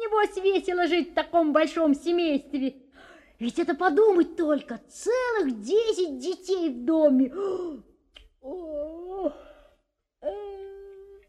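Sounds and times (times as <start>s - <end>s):
speech: 0.2s - 2.8s, 3.4s - 9.5s, 10.2s - 10.5s
yawn: 7.3s - 11.2s.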